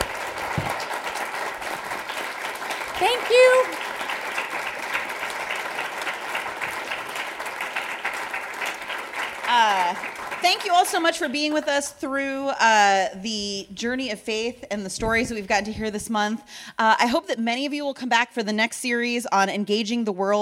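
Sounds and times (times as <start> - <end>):
audience round of applause: 0.0 - 11.3
speech: 0.6 - 0.8, 3.0 - 3.8, 10.4 - 20.4.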